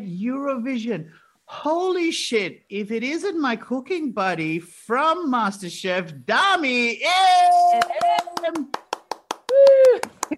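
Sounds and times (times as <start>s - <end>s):
speech: 0.2s - 8.8s
high voice cheering and whooping: 7.1s - 8.6s, 9.5s - 10.3s
small group clapping in rhythm: 7.5s - 10.3s.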